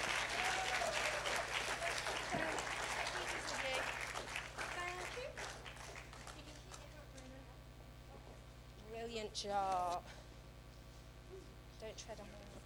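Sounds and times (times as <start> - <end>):
audience applause: 0.0 - 6.9
speech: 9.3 - 10.2, 11.8 - 12.6.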